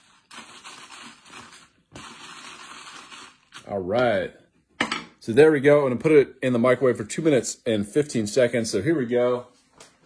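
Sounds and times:
mixing in a cup: 0.0 - 3.8
speech: 3.7 - 4.4, 5.2 - 9.5.

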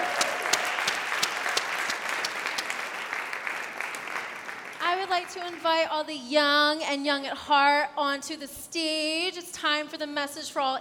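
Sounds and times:
audience applause for the gospel choir: 0.0 - 4.8
speech: 5.2 - 10.8.

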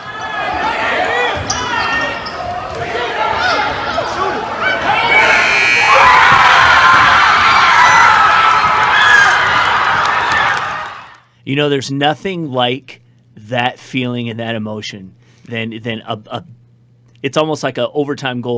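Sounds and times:
basketball game crowd shouting, cheering and screaming after a winning shot: 0.0 - 11.2
sneaker noise on basketball court: 0.1 - 5.5
speech: 11.5 - 16.6, 17.2 - 18.5.

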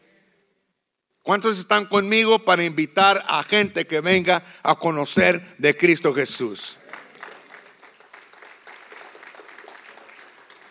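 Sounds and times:
speech: 1.3 - 6.8
audience applause: 6.8 - 10.6.

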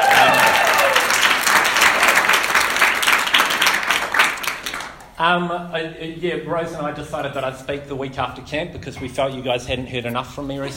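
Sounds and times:
evening crowd clapping: 0.0 - 5.2
speech: 5.2 - 10.7.

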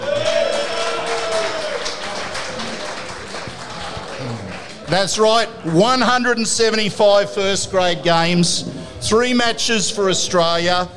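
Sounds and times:
round of applause from bar audience: 0.0 - 5.3
speech: 4.9 - 10.9.

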